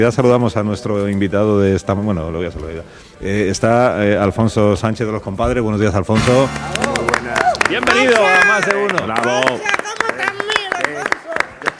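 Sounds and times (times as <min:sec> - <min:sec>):
speech: 0:00.0 - 0:06.9, 0:07.7 - 0:09.8
rhythmic hand clapping in a radio studio like a flamenco palmero: 0:06.2 - 0:11.7.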